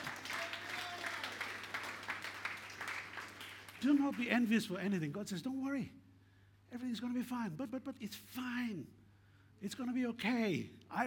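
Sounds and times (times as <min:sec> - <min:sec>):
crowd clapping: 0:00.0 - 0:04.5
speech: 0:03.8 - 0:06.0, 0:06.7 - 0:09.0, 0:09.6 - 0:11.0.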